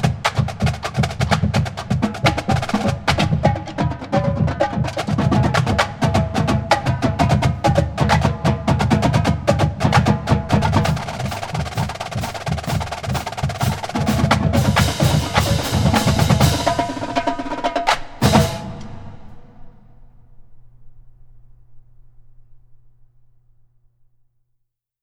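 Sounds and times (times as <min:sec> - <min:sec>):
drumline playing: 0:00.0 - 0:19.8.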